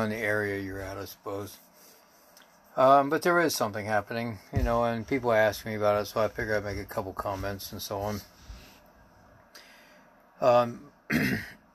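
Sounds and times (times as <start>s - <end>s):
speech: 0.0s - 1.7s, 2.8s - 8.3s, 10.4s - 11.6s
rough throat-clearing coughs brought on by sawdust: 11.1s - 11.6s.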